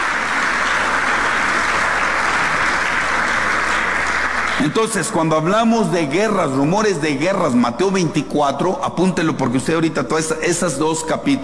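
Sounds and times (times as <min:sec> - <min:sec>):
audience applauding: 0:00.0 - 0:05.3
speech: 0:04.6 - 0:11.4.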